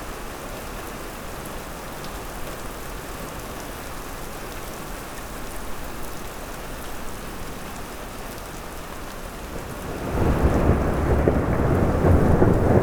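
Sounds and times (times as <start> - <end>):
rain in Oregon: 0.0 - 12.8
light thunderstorm in Oregon: 9.4 - 12.8.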